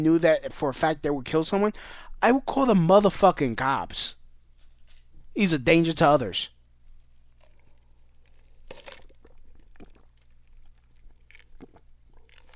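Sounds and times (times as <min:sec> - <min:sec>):
speech: 0:00.0 - 0:04.2, 0:05.4 - 0:06.5
low steady hum: 0:00.0 - 0:12.5
gulps and swallows of Sprite Zero soda: 0:07.4 - 0:12.5.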